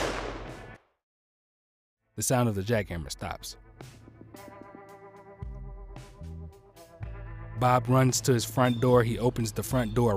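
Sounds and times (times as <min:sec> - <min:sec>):
gunshot: 0:00.0 - 0:00.8
speech: 0:02.2 - 0:04.5, 0:07.6 - 0:10.1.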